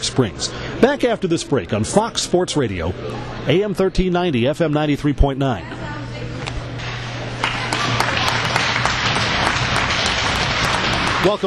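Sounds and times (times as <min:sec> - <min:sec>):
speech: 0:00.0 - 0:05.8, 0:11.2 - 0:11.4
crowd applause at hockey game: 0:07.4 - 0:11.4.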